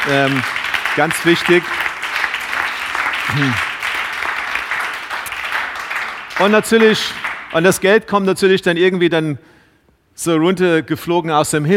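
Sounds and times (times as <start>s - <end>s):
audience applause: 0.0s - 7.8s
speech: 0.1s - 1.9s, 3.3s - 3.7s, 6.4s - 9.5s, 10.2s - 11.7s.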